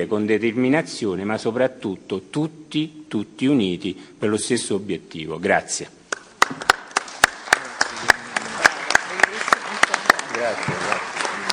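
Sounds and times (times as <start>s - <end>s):
speech: 0.0s - 6.6s
audience applause: 6.4s - 11.5s.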